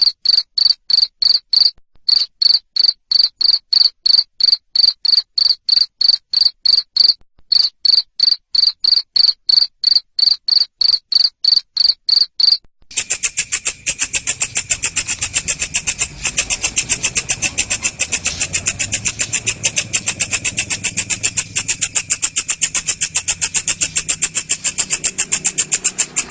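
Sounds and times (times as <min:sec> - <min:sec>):
cricket chirping: 0:00.0 - 0:26.2
buzzy pulsing: 0:12.9 - 0:26.2.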